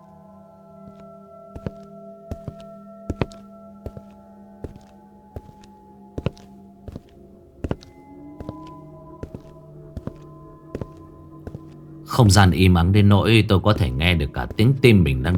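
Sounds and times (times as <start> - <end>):
heavy footsteps entering a room: 0.9 - 11.9
speech: 12.2 - 15.3.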